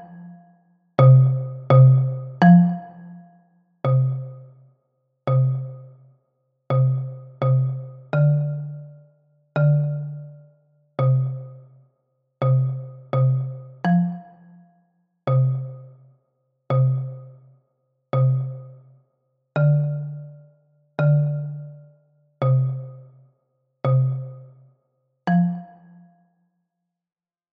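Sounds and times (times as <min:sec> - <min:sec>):
bass xylophone: 0:01.0 - 0:03.0, 0:03.9 - 0:04.6, 0:05.3 - 0:06.0, 0:06.7 - 0:11.6, 0:12.4 - 0:14.2, 0:15.3 - 0:16.0, 0:16.7 - 0:17.4, 0:18.2 - 0:18.8, 0:19.6 - 0:23.1, 0:23.9 - 0:24.5, 0:25.3 - 0:25.8.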